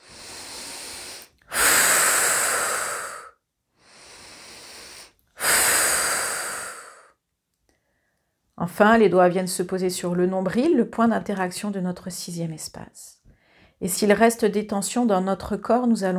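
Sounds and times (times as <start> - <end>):
slow breathing during guided relaxation: 0.0 - 8.3, 13.3 - 13.8
speech: 8.6 - 13.2, 13.8 - 16.1.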